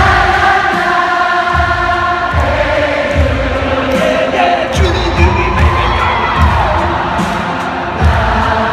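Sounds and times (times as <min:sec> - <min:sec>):
low rhythmic thumps: 0:00.0 - 0:08.7
huge concert crowd cheering and screaming: 0:04.8 - 0:08.7.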